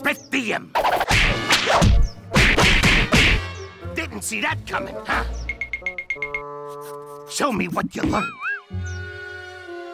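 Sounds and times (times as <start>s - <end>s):
speech: 0.1s - 2.0s, 4.2s - 5.4s, 7.3s - 8.9s
punch whooshes and thwacks in a self-defense lesson: 0.9s - 3.4s.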